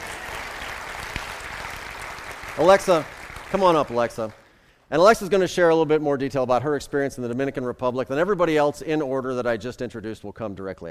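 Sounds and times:
crowd applause: 0:00.0 - 0:04.6
speech: 0:02.6 - 0:10.8.

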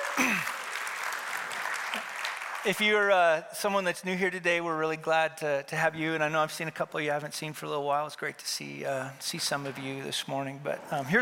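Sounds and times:
audience applause: 0:00.0 - 0:03.1
speech: 0:02.6 - 0:11.2.

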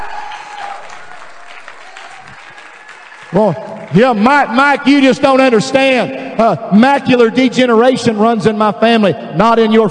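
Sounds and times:
audience clapping: 0:00.0 - 0:05.0
speech: 0:03.3 - 0:09.9.

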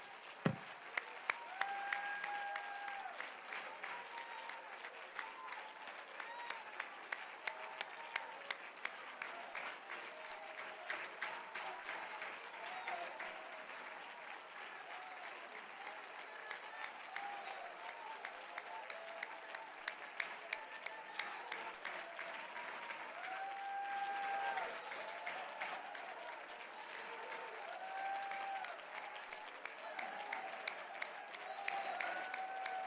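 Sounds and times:
audience clapping hands: 0:00.0 - 0:32.8.

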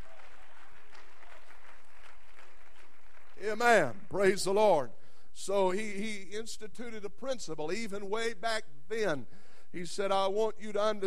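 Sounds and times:
audience clapping hands: 0:00.0 - 0:04.5
speech: 0:03.4 - 0:11.0.

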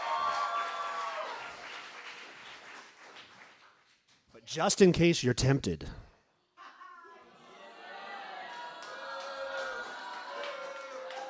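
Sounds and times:
crowd cheering and yelling: 0:00.0 - 0:01.6, 0:07.1 - 0:11.2
speech: 0:04.5 - 0:06.0.

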